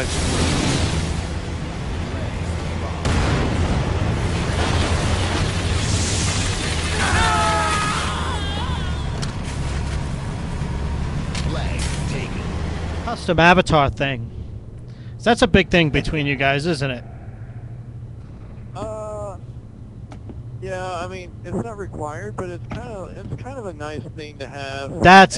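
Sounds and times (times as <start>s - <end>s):
tank engine rumbling: 0.0s - 25.3s
speech: 13.3s - 14.4s, 15.2s - 17.1s, 20.6s - 25.3s.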